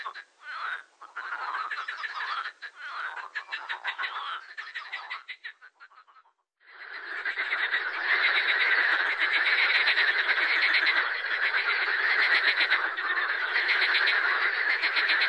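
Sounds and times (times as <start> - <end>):
marsh frog croaking: 0.0 - 15.2.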